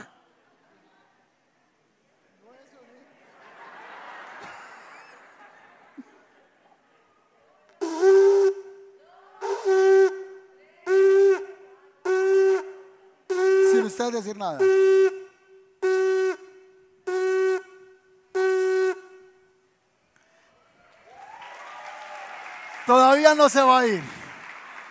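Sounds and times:
laughter: 3.0 - 7.8
shofar teruah blasts: 7.8 - 19.6
speech: 14.0 - 15.0, 22.9 - 24.2.

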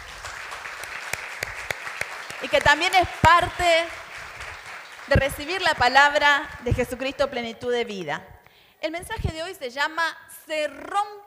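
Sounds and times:
crowd applauding: 0.0 - 6.7
speech: 2.4 - 4.0, 5.1 - 11.2.

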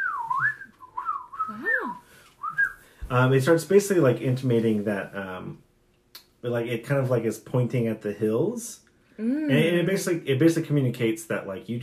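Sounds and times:
person whistling a bird-like tweeting tune: 0.0 - 2.8
speech: 3.1 - 5.7, 6.4 - 11.8.

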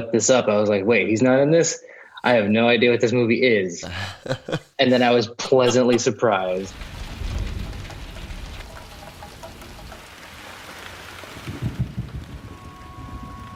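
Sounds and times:
speech: 0.0 - 6.9
laughter: 3.8 - 6.1
storm rain: 6.4 - 13.5
storm thunder: 6.7 - 13.5.

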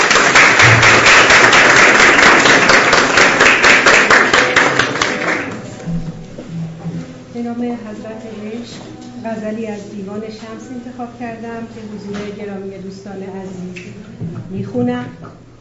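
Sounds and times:
crowd applauding: 0.0 - 5.9
speech: 7.5 - 15.5.

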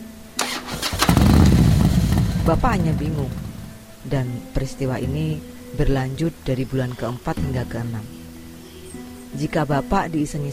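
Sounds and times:
motorcycle engine started with a hand starter: 0.4 - 3.8
low hum: 1.0 - 3.9
speech: 2.5 - 3.4, 4.0 - 8.2, 9.4 - 10.5.

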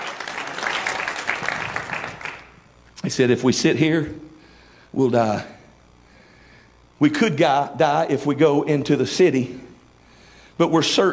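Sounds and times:
audience clapping hands: 0.0 - 2.6
speech: 3.0 - 4.3, 4.9 - 5.6, 7.0 - 9.7, 10.6 - 11.1.

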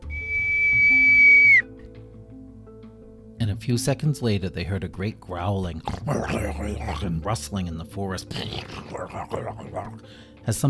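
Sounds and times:
shrill whistle blown on an acorn cap: 0.0 - 1.7
speech: 3.6 - 10.6.

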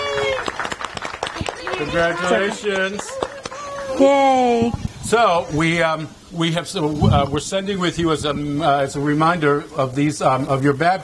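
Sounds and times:
person whooping: 0.0 - 0.6, 3.1 - 4.6
crowd clapping: 0.0 - 4.0
speech: 1.4 - 3.2, 3.9 - 11.0.

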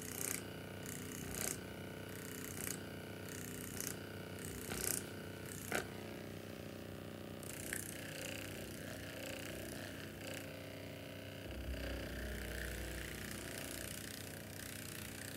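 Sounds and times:
spa full body massage massager: 0.0 - 15.3.

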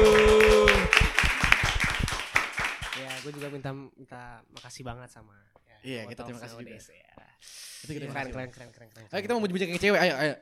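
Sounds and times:
hand clapping applause: 0.0 - 3.6
speech: 3.6 - 10.3.

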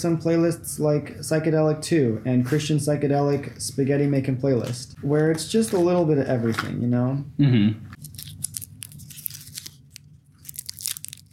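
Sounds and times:
speech: 0.0 - 8.0
crunching a hard lemon cough drop: 8.0 - 11.3.

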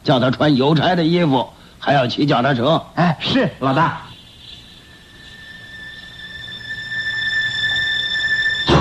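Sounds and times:
speech: 0.0 - 4.1
shrill doorbell of the old castle ringing: 4.9 - 8.7.

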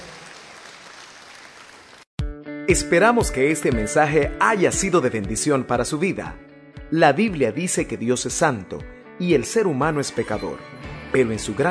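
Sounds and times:
audience applause: 0.0 - 2.1
speech: 2.7 - 11.6.

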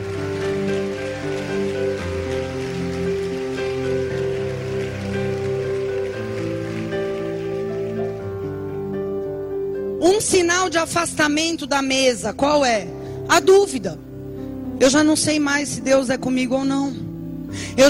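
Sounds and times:
audience applauding: 0.0 - 9.2
sustained keyboard chords: 0.0 - 17.8
speech: 10.2 - 14.1, 14.8 - 17.8.

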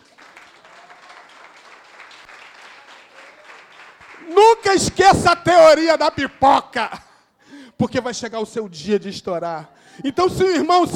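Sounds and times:
audience applause: 0.0 - 4.7
speech: 4.2 - 7.1, 7.8 - 10.9.

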